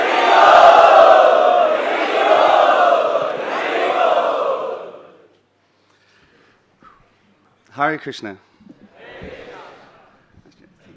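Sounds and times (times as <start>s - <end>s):
crowd loudly chanting in unison: 0.0s - 5.3s, 8.9s - 10.2s
speech: 7.8s - 8.7s.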